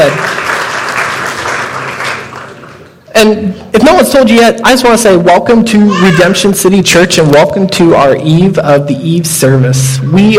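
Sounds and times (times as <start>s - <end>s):
speech: 0.0s - 0.3s, 3.3s - 10.3s
church congregation clapping for the children at a Christmas service: 0.0s - 3.0s.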